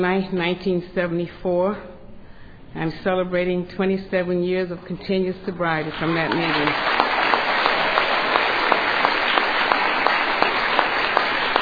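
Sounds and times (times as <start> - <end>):
speech: 0.0 - 1.9, 2.8 - 7.0
audience applause: 6.0 - 11.5.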